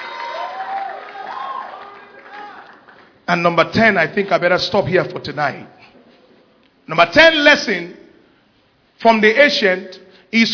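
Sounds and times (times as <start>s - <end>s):
audience clapping and cheering: 0.0s - 3.3s
speech: 3.3s - 5.9s, 6.9s - 8.0s, 9.0s - 10.5s.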